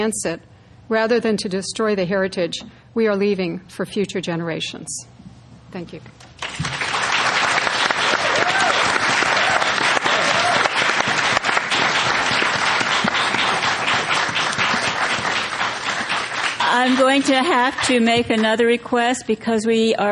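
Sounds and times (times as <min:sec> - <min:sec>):
speech: 0:00.0 - 0:05.1, 0:05.7 - 0:06.8, 0:16.8 - 0:20.1
audience applause: 0:06.4 - 0:17.9.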